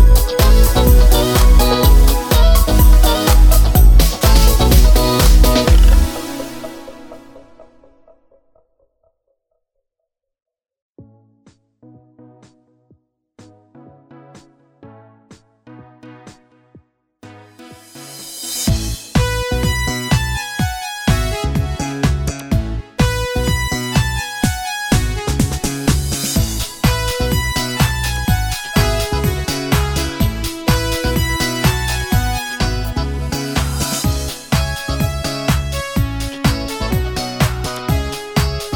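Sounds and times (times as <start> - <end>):
dance sound on an arranger keyboard: 0.0 - 8.0, 13.4 - 38.7.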